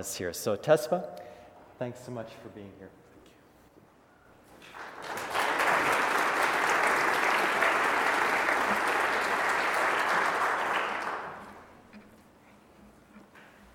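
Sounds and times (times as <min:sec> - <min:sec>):
speech: 0:00.0 - 0:03.0
audience applause at a morning gathering welcoming a storyteller: 0:04.6 - 0:11.8.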